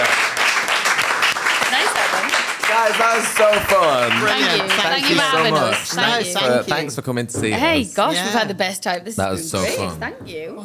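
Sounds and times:
live audience applause for two comedians: 0:00.0 - 0:06.6
speech: 0:02.8 - 0:10.6.

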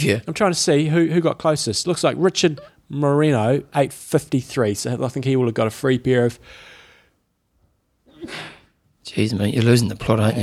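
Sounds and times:
speech: 0:00.0 - 0:06.7, 0:09.1 - 0:10.4
person sneezing: 0:08.1 - 0:08.7.

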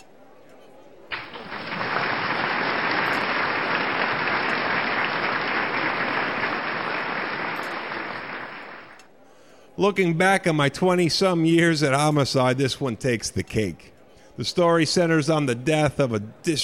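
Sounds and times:
large crowd's thunderous standing ovation applause: 0:01.1 - 0:09.0
speech: 0:09.8 - 0:16.6.

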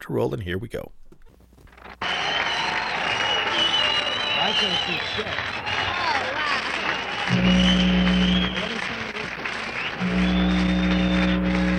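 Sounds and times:
speech: 0:00.1 - 0:01.1, 0:04.5 - 0:05.6
concert audience milling around before band starts: 0:02.0 - 0:11.7.

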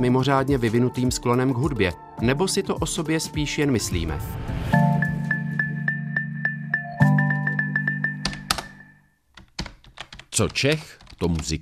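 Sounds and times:
speech: 0:00.0 - 0:04.8, 0:10.4 - 0:11.5
steady low hum: 0:03.8 - 0:06.3
typing on a computer keyboard: 0:07.5 - 0:11.5.

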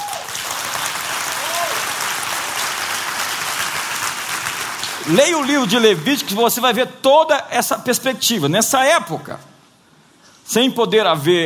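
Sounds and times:
audience applause: 0:00.0 - 0:06.5
speech: 0:05.0 - 0:09.5, 0:10.5 - 0:11.4.

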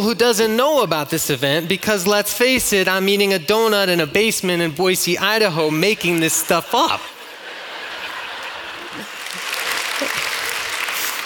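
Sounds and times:
speech: 0:00.0 - 0:07.1, 0:10.0 - 0:10.2
laughter: 0:05.7 - 0:11.2
audience applause: 0:07.2 - 0:11.2.

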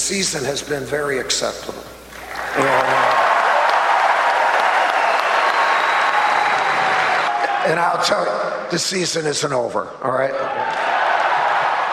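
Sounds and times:
speech: 0:00.1 - 0:02.0, 0:02.6 - 0:03.2, 0:07.6 - 0:10.8
crowd clapping: 0:02.2 - 0:07.6, 0:10.6 - 0:11.9.

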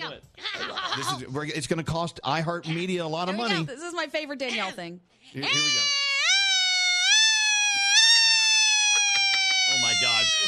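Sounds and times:
speech: 0:01.0 - 0:05.9
person imitating a siren with voice: 0:05.4 - 0:10.4.

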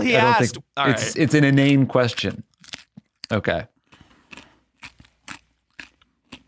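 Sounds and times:
speech: 0:00.0 - 0:02.5, 0:03.3 - 0:03.7
chewing a whole raw carrot: 0:01.6 - 0:06.4.

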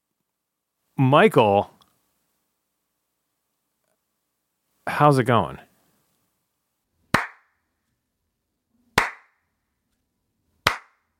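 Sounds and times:
speech: 0:01.0 - 0:01.7, 0:04.9 - 0:05.7
slow hand claps: 0:07.1 - 0:07.5, 0:09.0 - 0:09.4, 0:10.6 - 0:11.1.

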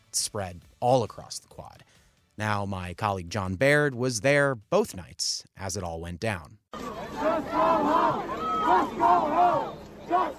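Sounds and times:
speech: 0:00.1 - 0:10.3
large crowd chanting and shouting at protest: 0:06.8 - 0:10.3.

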